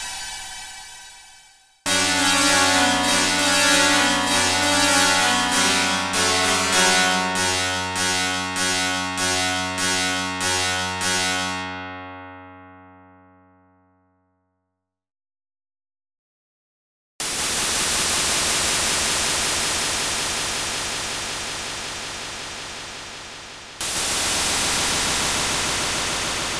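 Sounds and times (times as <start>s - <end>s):
noise: 1.9s - 11.7s, 17.2s - 26.5s.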